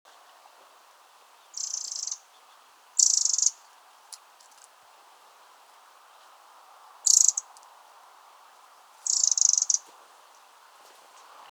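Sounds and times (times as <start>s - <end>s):
steady low hiss: 0.1s - 11.5s
Eurasian wren buzzy rattling calls: 1.6s - 2.2s, 3.0s - 3.6s, 7.0s - 7.5s, 9.0s - 9.8s.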